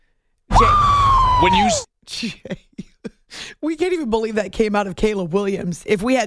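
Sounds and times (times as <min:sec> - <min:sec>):
person's loud high-pitched screech: 0:00.5 - 0:01.9
speech: 0:01.4 - 0:06.2.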